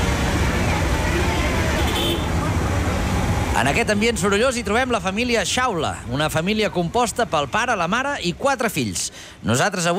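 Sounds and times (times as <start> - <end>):
dense city traffic roar of engines and road noise: 0.0 - 9.9
car horn toots: 1.8 - 2.3
speech: 3.6 - 9.9.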